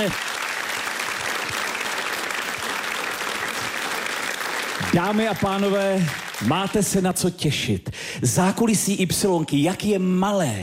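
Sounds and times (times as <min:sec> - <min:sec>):
speech: 0:00.0 - 0:00.3, 0:04.8 - 0:10.6
studio audience applauding: 0:00.0 - 0:07.1.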